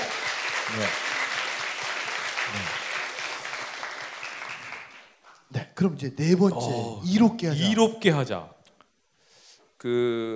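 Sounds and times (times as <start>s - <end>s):
audience clapping: 0.0s - 5.5s
speech: 0.7s - 1.0s, 2.5s - 2.8s, 5.8s - 8.6s, 9.8s - 10.3s.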